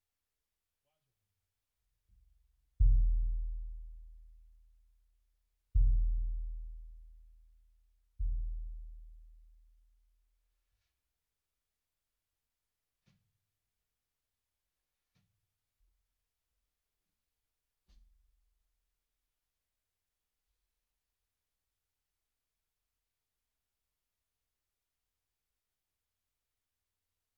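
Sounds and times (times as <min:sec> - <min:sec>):
bass drum: 0:02.8 - 0:04.7, 0:05.8 - 0:07.6, 0:08.2 - 0:09.6.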